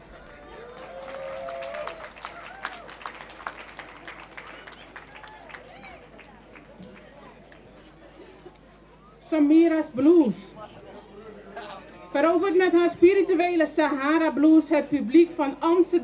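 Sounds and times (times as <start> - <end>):
audience applause: 0.0 - 7.7
speech: 9.3 - 10.6, 12.1 - 16.0.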